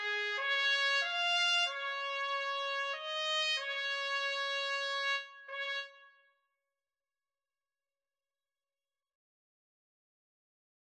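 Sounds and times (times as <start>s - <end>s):
trumpet: 0.0s - 6.4s.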